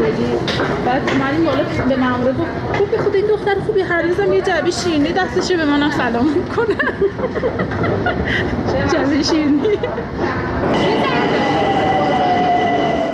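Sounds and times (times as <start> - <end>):
Tehran metro train rumbling with a tonal whine: 0.0 - 13.1
speech: 0.1 - 11.7
laughter: 6.3 - 10.3.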